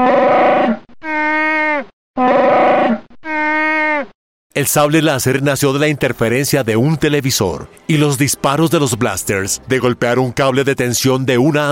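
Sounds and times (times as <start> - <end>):
creature roar mixed from bears and walruses: 0.0 - 4.1
speech: 4.6 - 11.7.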